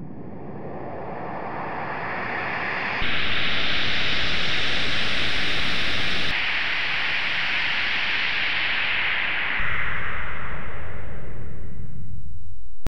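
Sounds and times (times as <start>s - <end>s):
noise maker: 0.0s - 12.8s.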